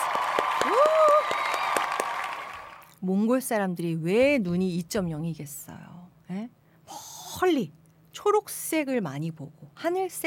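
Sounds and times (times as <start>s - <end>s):
audience applause: 0.0s - 2.9s
speech: 3.0s - 6.6s, 7.4s - 10.2s.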